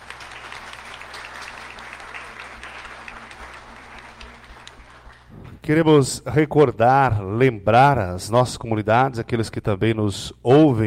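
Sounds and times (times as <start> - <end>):
round of applause: 0.0 - 5.6
speech: 5.6 - 10.8.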